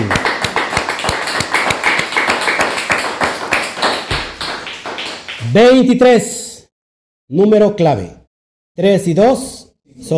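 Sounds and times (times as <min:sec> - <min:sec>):
loud applause: 0:00.0 - 0:05.6
speech: 0:05.5 - 0:06.3, 0:07.3 - 0:08.2, 0:08.8 - 0:10.1.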